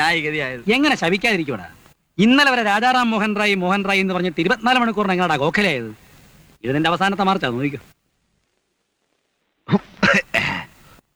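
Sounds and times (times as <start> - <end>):
speech: 0.1 - 6.0, 6.6 - 8.0, 9.7 - 10.3
person coughing: 9.7 - 10.8.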